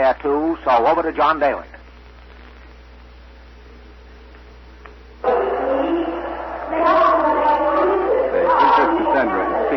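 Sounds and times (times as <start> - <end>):
speech: 0.0 - 1.8
crowd chatter in a market square: 5.2 - 9.7.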